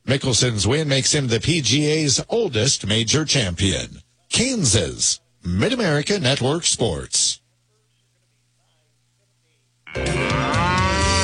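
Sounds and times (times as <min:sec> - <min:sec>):
speech: 0:00.1 - 0:07.4
cow mooing: 0:09.9 - 0:11.2.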